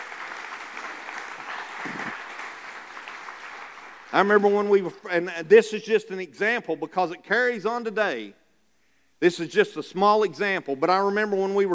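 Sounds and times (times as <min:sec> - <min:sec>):
audience applauding: 0:00.0 - 0:04.9
speech: 0:04.1 - 0:08.4, 0:09.2 - 0:11.7.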